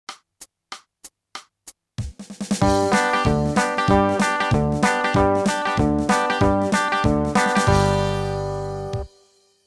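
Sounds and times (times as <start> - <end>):
country music: 2.6 - 9.1.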